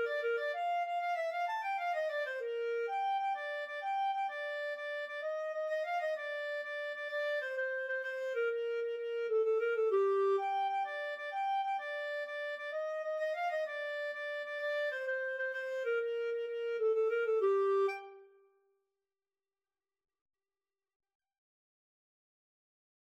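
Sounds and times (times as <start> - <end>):
clarinet duet playing a tarantella: 0.0 - 18.4.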